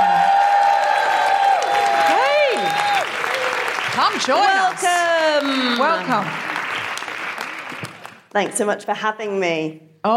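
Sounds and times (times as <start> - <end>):
loud whooping cheers: 0.0 - 3.8
audience applauding to welcome a guest: 0.0 - 8.6
speech: 4.1 - 6.5, 8.4 - 10.1.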